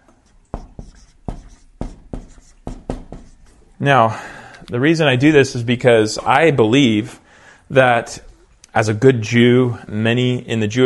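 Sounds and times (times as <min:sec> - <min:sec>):
pen writing out a Bible verse by hand on paper: 0:00.2 - 0:03.6
speech: 0:03.8 - 0:10.8.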